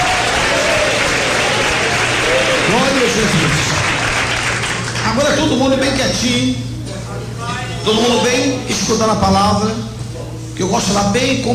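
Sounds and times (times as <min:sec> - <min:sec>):
audience clapping: 0:00.0 - 0:05.2
speech: 0:03.2 - 0:03.8, 0:05.1 - 0:06.7, 0:07.8 - 0:09.9, 0:10.6 - 0:11.5.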